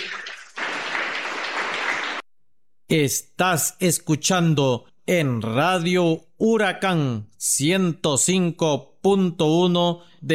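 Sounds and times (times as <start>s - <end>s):
applause: 0.0s - 2.3s
speech: 2.9s - 10.3s.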